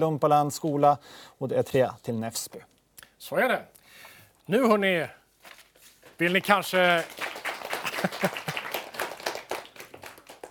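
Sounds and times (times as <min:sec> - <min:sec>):
speech: 0:00.0 - 0:05.2, 0:06.2 - 0:07.3, 0:08.0 - 0:08.5
one person clapping hands: 0:06.3 - 0:10.4
laughter: 0:07.8 - 0:08.9.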